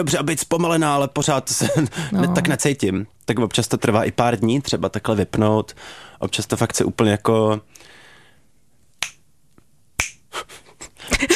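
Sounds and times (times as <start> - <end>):
speech: 0.0 - 8.0
finger snapping: 9.0 - 10.2.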